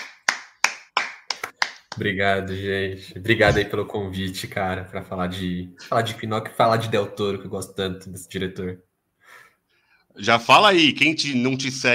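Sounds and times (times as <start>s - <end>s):
hand claps: 0.0s - 2.1s
speech: 2.0s - 9.4s, 10.2s - 11.9s.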